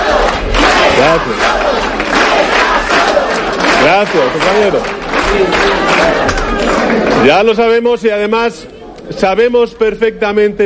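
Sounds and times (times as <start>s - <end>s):
audience chanting in support at rally: 0.0s - 7.2s
speech: 3.9s - 10.6s.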